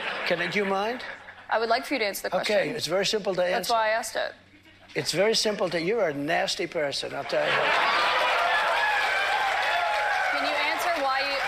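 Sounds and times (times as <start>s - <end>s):
laughter: 0.0s - 1.5s, 7.2s - 9.1s
speech: 0.3s - 8.1s
crowd cheering: 7.3s - 11.4s
people clapping: 7.5s - 11.4s.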